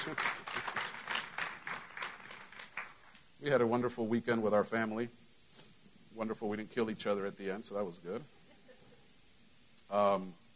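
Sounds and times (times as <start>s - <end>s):
audience hand clapping: 0.0s - 3.2s
speech: 0.1s - 0.4s, 3.4s - 5.2s, 6.2s - 8.4s, 9.9s - 10.4s.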